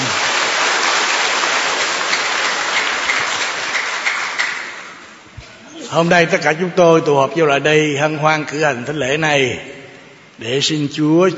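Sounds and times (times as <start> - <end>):
congregation applauding at a church Mass welcoming a superior general: 0.0 - 5.3
speech: 5.9 - 9.7, 10.4 - 11.3.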